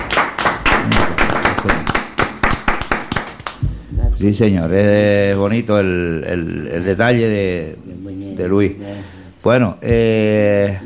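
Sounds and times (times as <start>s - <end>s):
applause from a small group: 0.0s - 3.6s
speech: 4.2s - 10.8s.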